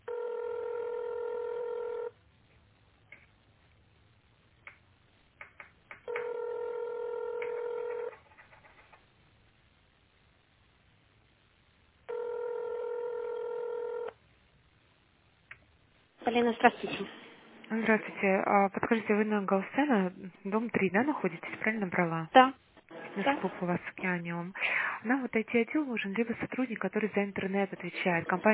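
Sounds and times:
telephone ringback tone while a call is transferred to reception: 0:00.0 - 0:02.1, 0:06.1 - 0:08.2, 0:12.1 - 0:14.2
speech: 0:16.3 - 0:22.6, 0:23.2 - 0:28.5.

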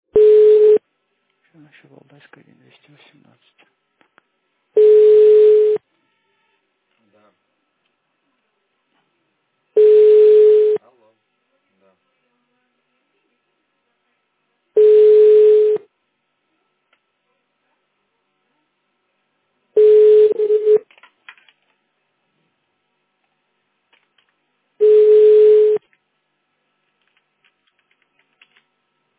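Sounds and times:
telephone ringback tone while calling a subscriber: 0:00.2 - 0:00.8, 0:04.8 - 0:05.8, 0:09.8 - 0:10.8, 0:14.8 - 0:15.8, 0:19.8 - 0:20.8, 0:24.8 - 0:25.8
speech: 0:01.6 - 0:03.7.

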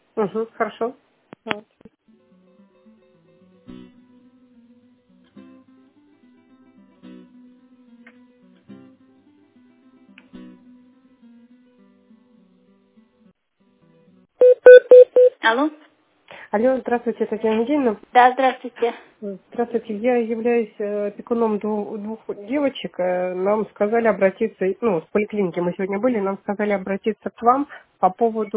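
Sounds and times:
speech: 0:00.2 - 0:02.0, 0:15.4 - 0:15.8, 0:16.5 - 0:28.5
faint low telephone tone during a call transfer: 0:14.4 - 0:15.3.

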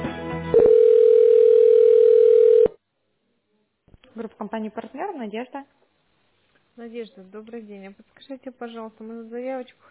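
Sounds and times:
steady telephone tone while a call is transferred to an operator: 0:00.6 - 0:02.8
speech: 0:04.4 - 0:05.8, 0:06.8 - 0:09.8.

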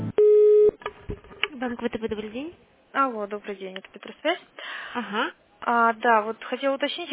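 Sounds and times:
telephone tone during call transfer: 0:00.2 - 0:00.8
speech: 0:01.6 - 0:07.1.

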